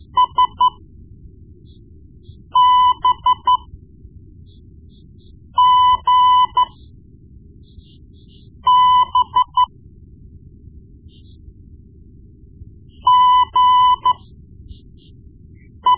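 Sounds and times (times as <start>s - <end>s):
morse code beeps: 0.0s - 0.8s, 2.5s - 3.7s, 5.6s - 6.8s, 8.4s - 9.7s, 13.0s - 14.2s, 15.6s - 15.9s.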